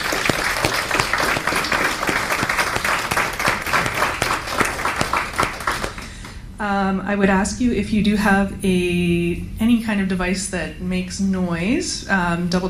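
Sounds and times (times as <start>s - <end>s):
audience round of applause: 0.0s - 6.4s
speech: 6.6s - 12.6s.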